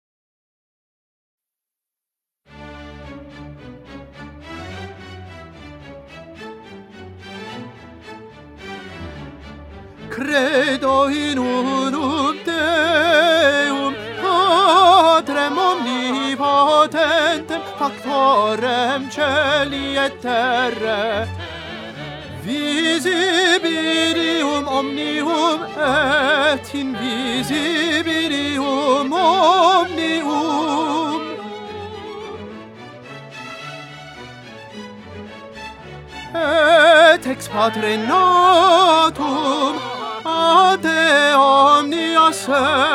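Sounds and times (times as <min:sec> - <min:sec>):
tenor singing: 0:10.0 - 0:32.6, 0:36.3 - 0:42.9.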